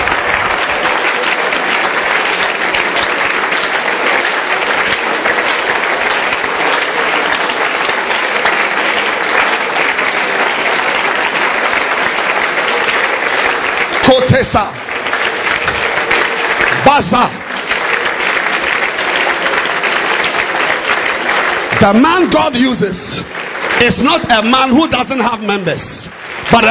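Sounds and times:
congregation clapping hands during a sermon: 0.0s - 26.6s
speech: 14.5s - 14.8s, 16.8s - 17.4s, 21.8s - 26.6s.

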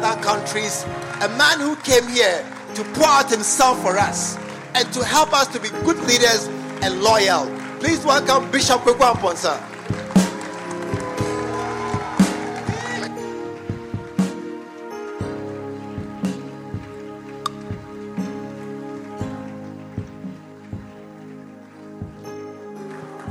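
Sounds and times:
crowd clapping and cheering: 0.0s - 23.2s
speech: 0.1s - 10.0s
steady drumbeat: 5.0s - 14.4s, 16.0s - 18.4s, 20.0s - 21.0s, 22.0s - 22.2s.

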